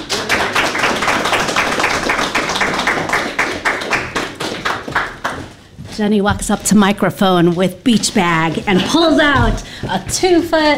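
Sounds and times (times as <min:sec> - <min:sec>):
audience clapping: 0:00.0 - 0:05.6, 0:07.2 - 0:09.6
speech: 0:06.0 - 0:10.7.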